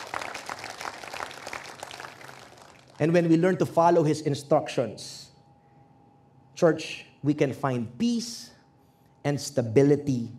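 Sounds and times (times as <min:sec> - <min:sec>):
congregation applauding in church during a sermon: 0:00.0 - 0:03.2
speech: 0:03.0 - 0:05.2, 0:06.6 - 0:08.6, 0:09.2 - 0:10.3.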